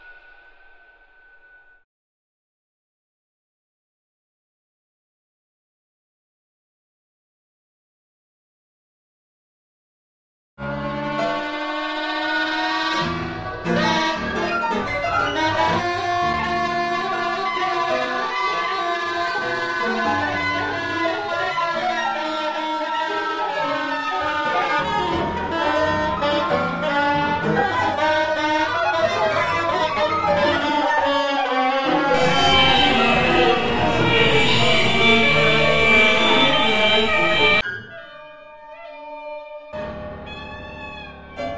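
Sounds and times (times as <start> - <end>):
many saxophones playing: 10.8 - 37.6.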